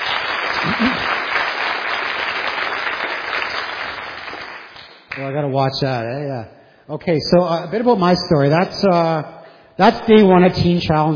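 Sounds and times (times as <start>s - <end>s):
audience applause: 0.0s - 4.8s
speech: 5.2s - 11.1s.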